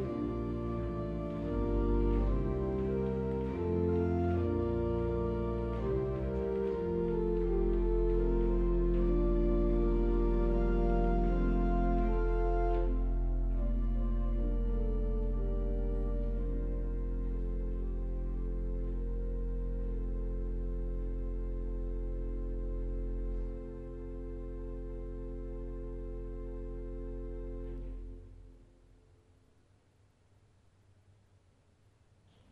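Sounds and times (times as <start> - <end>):
Vox Coelestis string organ stop: 0.0 - 28.2.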